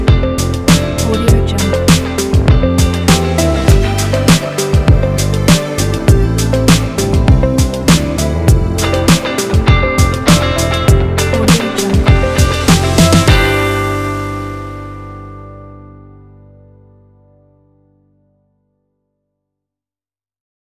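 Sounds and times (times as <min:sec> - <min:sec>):
fresh cool pop groove: 0:00.0 - 0:15.0.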